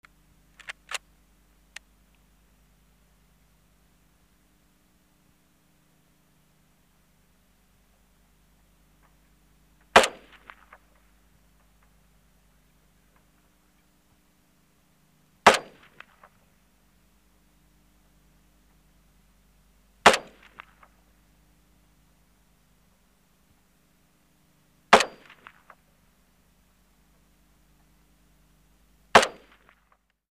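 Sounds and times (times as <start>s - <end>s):
automatic rifle being loaded: 0.6s - 1.0s
automatic rifle shots: 9.9s - 10.9s, 15.4s - 16.3s, 20.0s - 20.9s, 24.9s - 25.8s, 29.1s - 29.8s.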